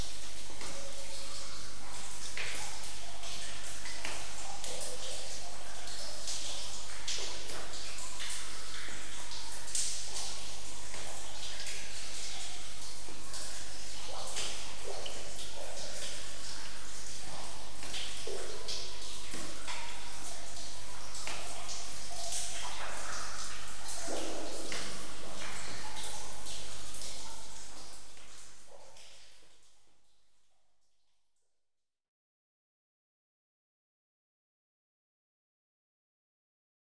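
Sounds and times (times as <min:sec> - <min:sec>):
stream water flowing in a cave: 0:00.0 - 0:28.6.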